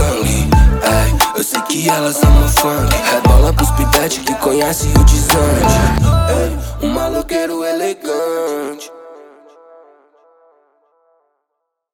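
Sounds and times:
trap rap music: 0.0 - 9.1.

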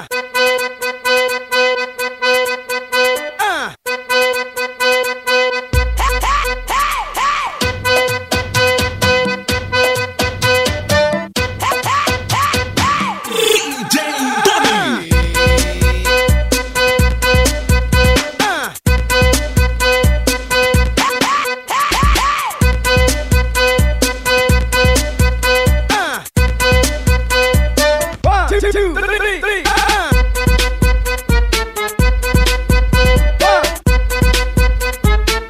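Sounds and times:
funk montagem music: 0.1 - 35.4.

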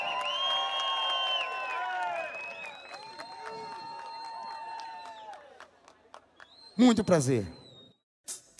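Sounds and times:
audience whoops and whistles: 0.0 - 5.4, 6.4 - 8.0
audience applauding: 0.0 - 6.8
speech: 6.8 - 7.6.

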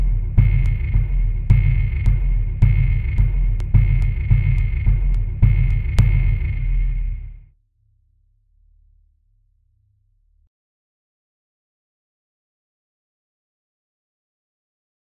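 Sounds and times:
horror music: 0.0 - 7.4.

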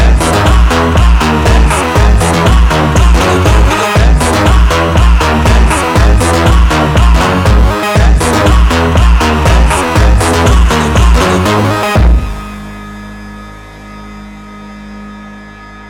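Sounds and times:
unusual rhythm: 0.0 - 12.4.

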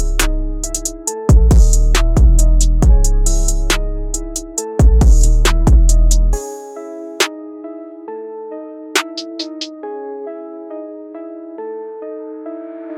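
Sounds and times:
hard dark beat: 0.0 - 6.4, 9.0 - 9.7.

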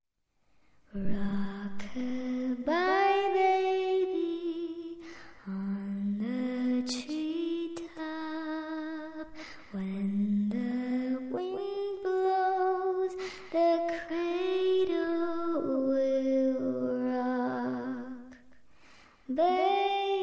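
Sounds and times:
creepy little girl singing a lullaby: 0.9 - 18.5, 19.2 - 20.2.

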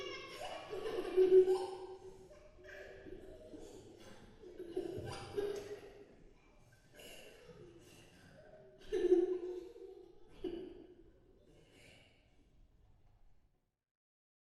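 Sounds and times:
creepy ghost children laughing: 0.0 - 6.2, 7.0 - 10.8.

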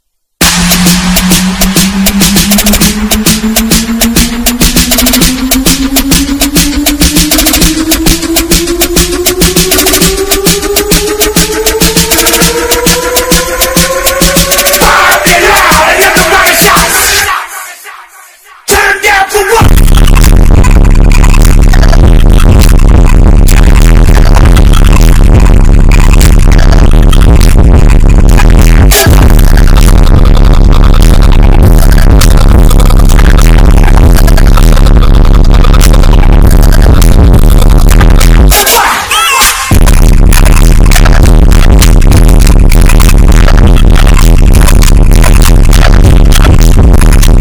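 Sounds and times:
boosted bass: 0.4 - 17.6, 18.6 - 47.3.

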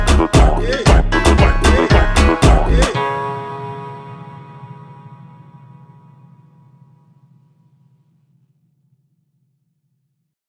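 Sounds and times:
Brazilian funk music: 0.0 - 5.2.

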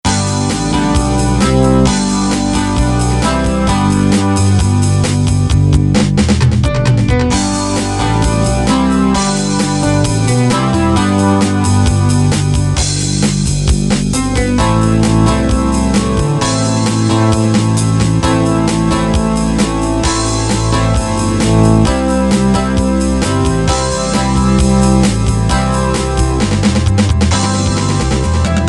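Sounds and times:
instrumental pop music: 0.0 - 28.6.

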